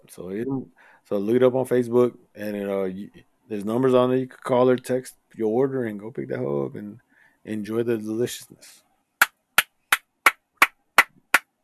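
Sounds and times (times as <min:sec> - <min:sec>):
speech: 0:00.1 - 0:08.8
hands clapping: 0:09.6 - 0:11.6.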